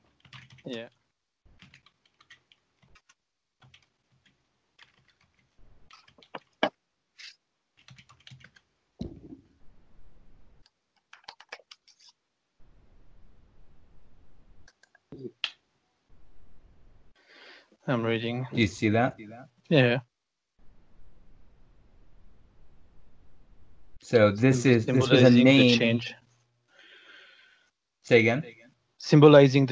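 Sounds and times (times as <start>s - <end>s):
typing a search on a computer keyboard: 0.1s - 0.7s, 1.6s - 6.5s, 7.8s - 8.6s, 10.6s - 12.1s, 14.7s - 15.0s
speech: 0.6s - 1.0s, 17.9s - 20.1s, 24.1s - 26.2s, 28.1s - 29.7s.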